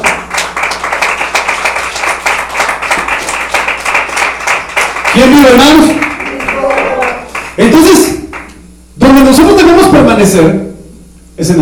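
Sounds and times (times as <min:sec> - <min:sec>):
crowd clapping: 0:00.0 - 0:08.6
speech: 0:05.2 - 0:06.1, 0:07.6 - 0:08.2, 0:09.0 - 0:10.6.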